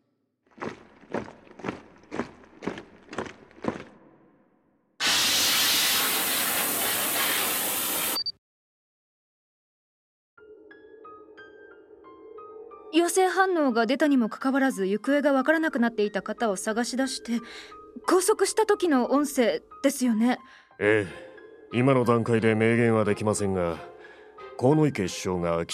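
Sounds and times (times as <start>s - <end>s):
footsteps: 0.5s - 4.0s
disinfectant spray hissing: 5.0s - 8.2s
speech: 13.0s - 23.9s, 24.6s - 25.7s.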